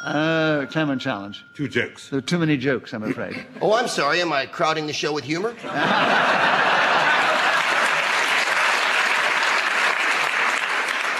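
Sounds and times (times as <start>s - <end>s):
speech: 0.0s - 6.9s
laughter: 3.0s - 4.0s, 5.4s - 8.6s
studio audience round of applause: 6.4s - 11.1s.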